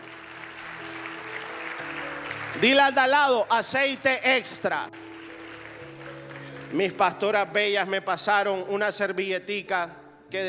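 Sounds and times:
audience applause: 0.0 - 7.0
speech: 2.6 - 5.0, 6.7 - 10.4.

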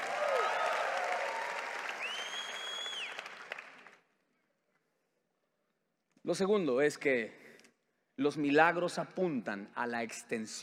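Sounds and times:
audience applauding: 0.0 - 4.0
speech: 6.3 - 7.4, 8.2 - 10.6.

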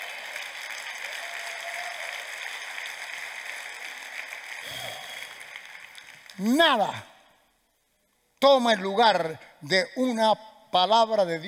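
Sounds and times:
audience applause: 0.0 - 7.1
person shouting: 6.4 - 7.1
speech: 6.4 - 7.1, 8.4 - 11.4.

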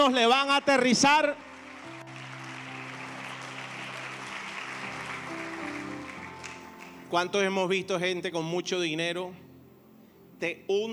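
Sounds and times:
speech: 0.0 - 1.5, 7.1 - 9.4, 10.4 - 10.9
audience applauding: 1.2 - 7.1.

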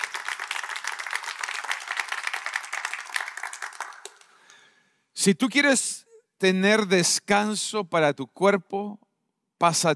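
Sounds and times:
audience applause: 0.0 - 4.3
speech: 5.2 - 9.0, 9.6 - 9.9.

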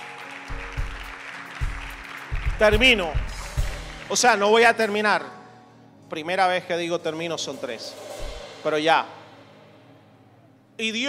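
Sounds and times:
audience applause: 0.0 - 4.2
speech: 2.6 - 3.3, 4.1 - 5.4, 6.1 - 9.2, 10.8 - 11.0.

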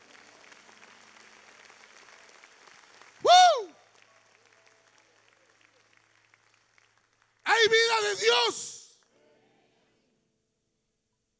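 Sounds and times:
audience applause: 0.0 - 8.7
speech: 7.6 - 8.7.

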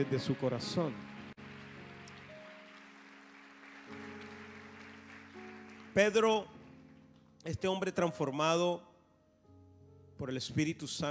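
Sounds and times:
speech: 0.0 - 1.1, 6.0 - 6.6, 7.4 - 8.9, 10.2 - 11.1
audience applause: 0.0 - 6.4.

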